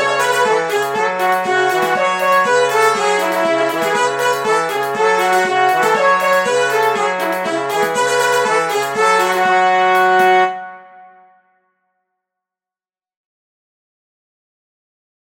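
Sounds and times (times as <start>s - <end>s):
polka music: 0.0s - 10.9s.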